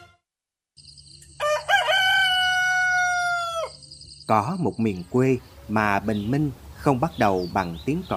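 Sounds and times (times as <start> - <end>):
rooster crowing at dawn: 1.3 - 3.8
speech: 4.3 - 8.1.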